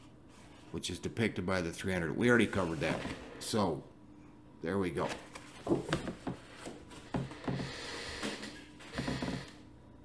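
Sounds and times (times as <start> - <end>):
speech: 0.7 - 3.9, 4.6 - 6.3
squeaky chair creaking: 7.4 - 9.6.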